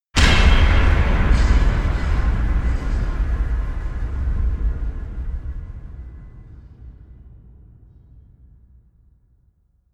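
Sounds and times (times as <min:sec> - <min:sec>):
evil slams: 0:00.2 - 0:06.8.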